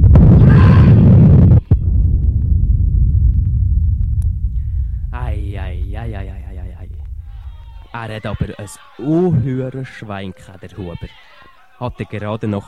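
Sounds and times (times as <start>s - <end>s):
explosions: 0.0s - 8.5s
speech: 8.0s - 12.6s.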